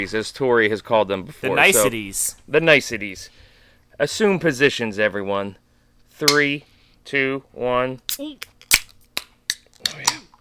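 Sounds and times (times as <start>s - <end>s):
speech: 0.0s - 3.4s, 4.0s - 5.6s, 6.2s - 8.5s
beer cans cracking open: 8.4s - 10.4s.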